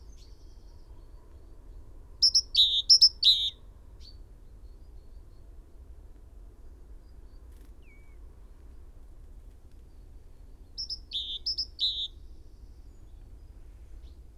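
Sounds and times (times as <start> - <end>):
great tit song: 2.2 - 3.5, 10.8 - 12.2.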